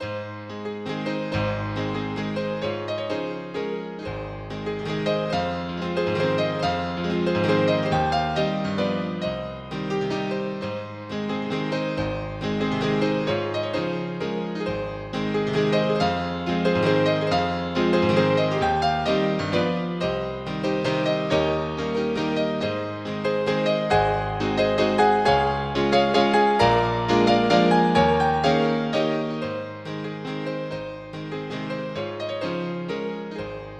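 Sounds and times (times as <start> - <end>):
waltz music: 0.7 - 33.7.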